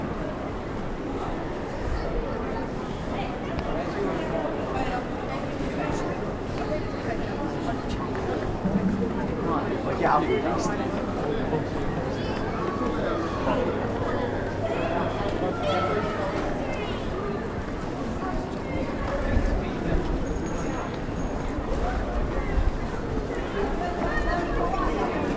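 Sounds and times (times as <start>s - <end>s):
crowded street market murmur of overlapping voices: 0.0s - 25.3s.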